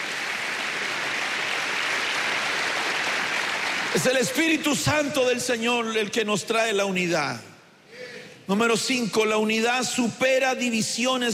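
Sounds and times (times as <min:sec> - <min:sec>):
audience applause: 0:00.0 - 0:04.6
speech: 0:03.9 - 0:07.5, 0:08.5 - 0:11.3.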